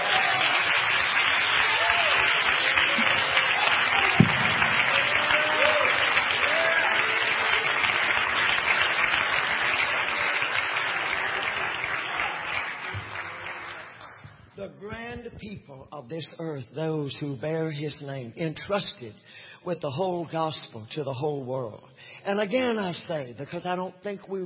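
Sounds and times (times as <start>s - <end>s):
audience clapping hands: 0.0s - 15.1s
speech: 16.1s - 24.4s.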